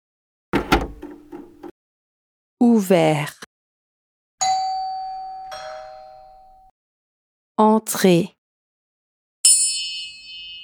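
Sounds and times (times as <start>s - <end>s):
door closing with a thump: 0.6s - 1.7s
speech: 2.6s - 3.5s, 7.6s - 8.4s.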